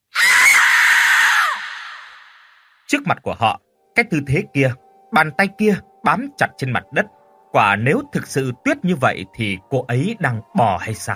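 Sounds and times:
woman's terrified scream horror-story sound effect: 0.1 - 2.4
speech: 2.9 - 11.1.

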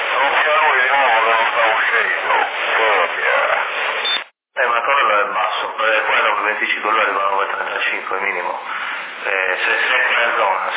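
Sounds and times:
CB radio transmission with beep and echo: 0.0 - 4.3
speech: 4.8 - 10.7.

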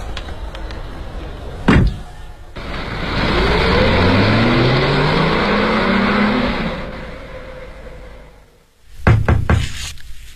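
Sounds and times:
car engine revving: 1.1 - 8.6
neighbourhood committee official knocking on a door: 9.1 - 9.7.

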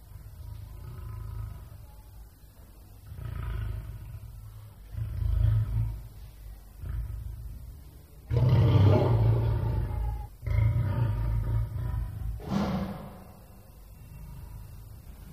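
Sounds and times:
lion roaring: 0.1 - 1.9, 3.0 - 13.2.

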